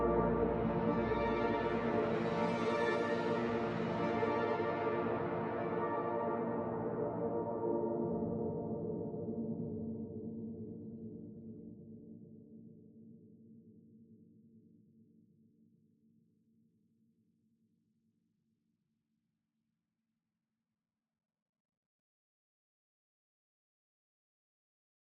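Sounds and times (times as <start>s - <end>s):
ambient music: 0.0s - 9.6s.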